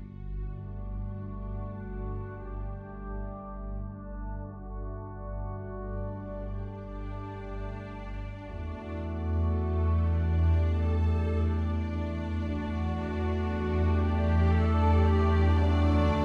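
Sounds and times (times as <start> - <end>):
brass instruments: 0.2 - 16.2.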